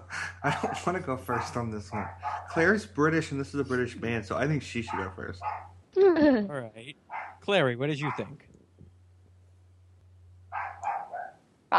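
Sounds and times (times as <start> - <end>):
laughter: 0.0 - 5.0
low steady hum: 0.0 - 11.7
household dogs barking indoors: 0.4 - 2.9, 4.7 - 5.8, 7.0 - 7.4, 8.0 - 8.4, 10.5 - 11.4
speech: 0.4 - 8.5.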